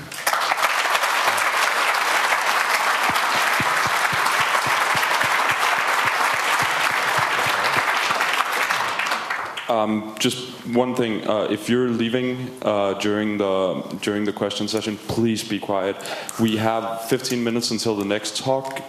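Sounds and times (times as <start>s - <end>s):
audience applause: 0.0s - 9.7s
speech: 9.7s - 18.8s.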